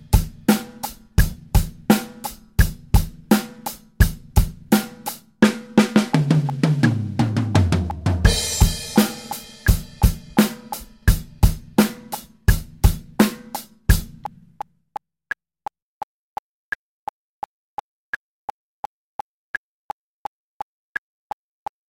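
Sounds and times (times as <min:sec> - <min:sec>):
beginner drum fills at 85 BPM: 0:00.0 - 0:14.4.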